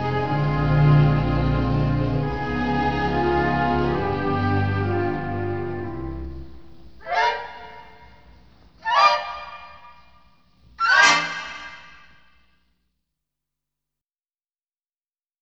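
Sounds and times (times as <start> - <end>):
instrumental music: 0.0 - 12.2.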